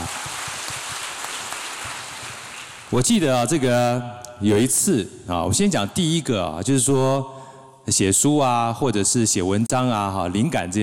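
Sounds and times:
audience applause: 0.0 - 2.9
speech: 2.9 - 10.8.

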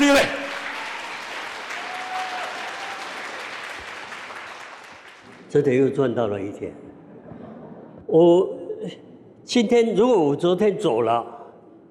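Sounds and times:
audience applause: 0.0 - 5.5
speech: 5.5 - 6.9, 8.1 - 11.4.

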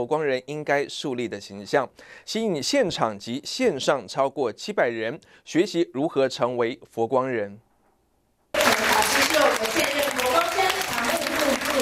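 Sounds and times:
speech: 0.0 - 7.7
audience applause in welcome: 8.6 - 11.7.

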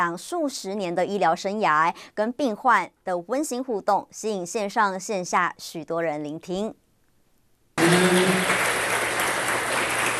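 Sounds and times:
speech: 0.0 - 6.8, 7.8 - 8.7
audience applause as speakers enter: 7.8 - 10.1.

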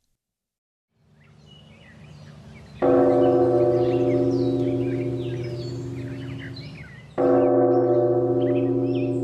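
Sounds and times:
large temple bell being struck: 2.8 - 9.2.

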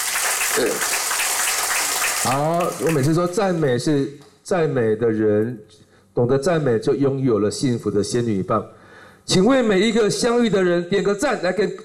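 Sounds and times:
audience applause at a Humanistic Buddhism talk: 0.0 - 3.4
speech: 0.6 - 1.0, 2.2 - 11.8.

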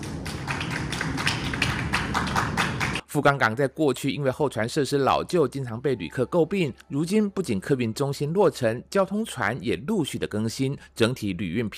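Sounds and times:
applause: 0.0 - 3.0
speech: 3.1 - 11.7.

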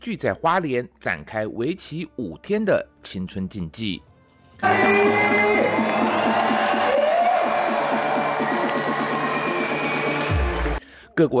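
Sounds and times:
speech: 0.0 - 6.5, 11.2 - 11.3
crowd applauding and cheering at an opening ceremony: 4.6 - 10.8.

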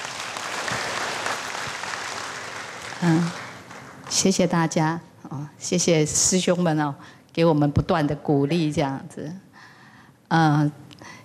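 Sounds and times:
audience applause: 0.0 - 4.4
speech: 3.0 - 3.4, 4.2 - 9.4, 10.3 - 11.2.

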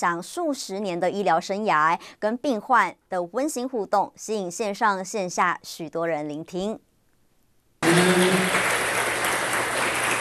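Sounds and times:
speech: 0.0 - 6.9
audience applause: 7.8 - 10.1.

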